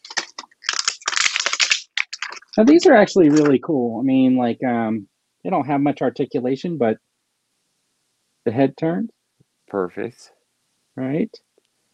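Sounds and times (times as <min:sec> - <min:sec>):
crunching of plastic packaging: 0:00.0 - 0:03.6
speech: 0:02.6 - 0:07.1, 0:08.4 - 0:10.4, 0:11.0 - 0:11.5.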